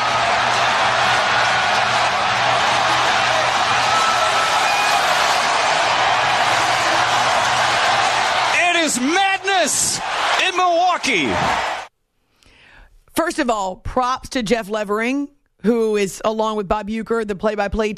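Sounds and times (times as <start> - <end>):
stadium crowd cheering after home run: 0.0 - 11.9
speech: 11.0 - 11.7, 13.4 - 17.9.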